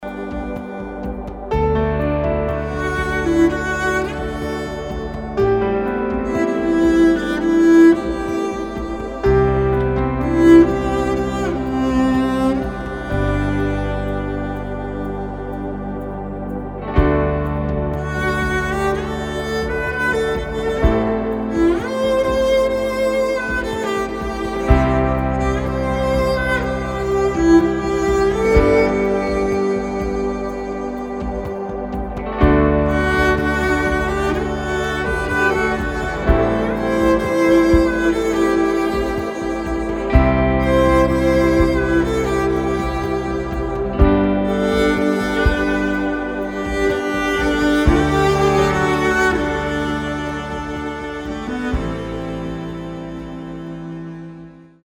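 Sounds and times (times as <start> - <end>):
cello: 0.0 - 54.8.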